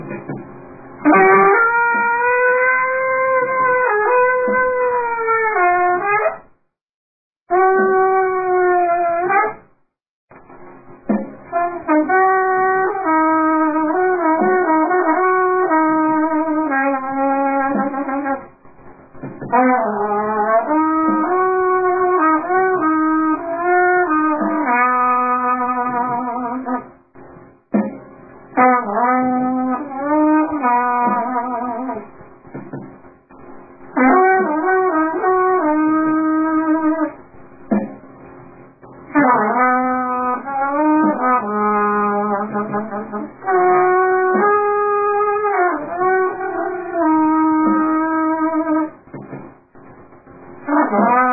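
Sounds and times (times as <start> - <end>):
clarinet accompaniment: 1.0 - 6.5, 7.5 - 9.7, 11.1 - 18.5, 19.4 - 26.9, 28.6 - 32.1, 34.0 - 37.2, 39.1 - 49.0, 50.7 - 51.3.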